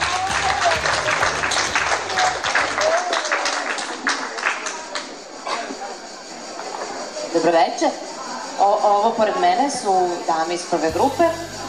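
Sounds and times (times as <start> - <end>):
audience applause as performers are called onto a stage: 0.0 - 5.8
speech: 7.4 - 11.6.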